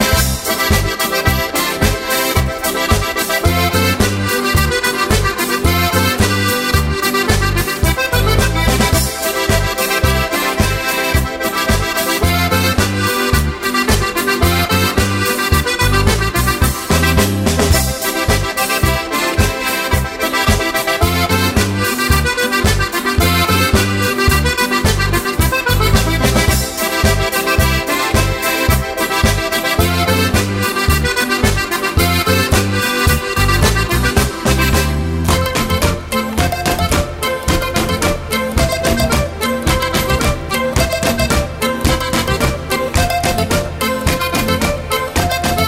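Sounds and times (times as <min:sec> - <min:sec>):
mandolins playing a Boarischer folk dance: 0:00.0 - 0:45.6.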